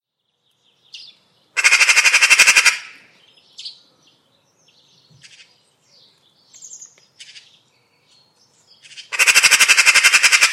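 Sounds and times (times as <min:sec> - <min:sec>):
bird harsh chattering bursts: 0:01.6 - 0:03.8, 0:08.8 - 0:10.5.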